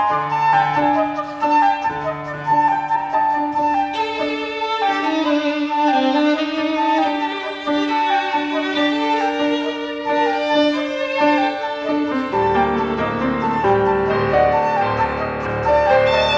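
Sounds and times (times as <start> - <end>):
flute: 0.0 - 16.3
piano: 0.0 - 16.3
violin: 0.0 - 16.3.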